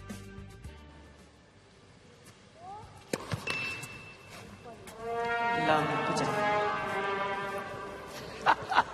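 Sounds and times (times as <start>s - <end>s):
slide trombone playing sad cartoon tune: 5.0s - 8.1s
laughter: 8.1s - 8.9s.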